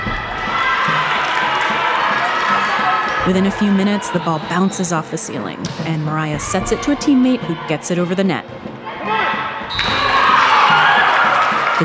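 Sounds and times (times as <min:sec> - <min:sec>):
volleyball team cheering: 0:00.0 - 0:11.8
speech: 0:03.2 - 0:08.7.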